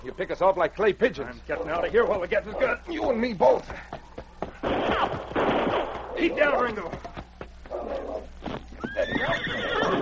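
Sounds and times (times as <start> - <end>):
hooves of horses galloping off: 0.0 - 10.0
speech: 0.1 - 4.1, 4.7 - 7.2
horse whinnying: 7.7 - 10.0.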